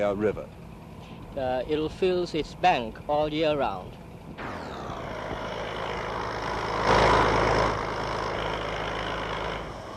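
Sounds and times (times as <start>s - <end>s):
speech: 0.0s - 0.6s, 1.3s - 4.5s
construction machinery running at dam site: 0.0s - 9.9s.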